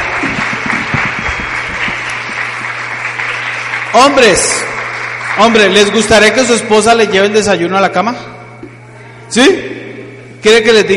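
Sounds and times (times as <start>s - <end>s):
audience applause: 0.0s - 6.6s
speech: 3.9s - 4.7s, 5.4s - 8.3s, 9.3s - 9.7s, 10.4s - 10.9s.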